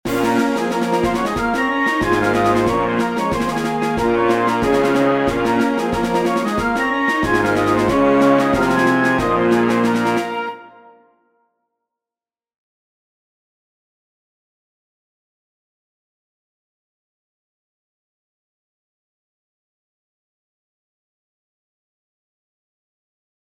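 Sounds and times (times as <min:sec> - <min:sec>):
concert band piece: 0:00.1 - 0:10.5.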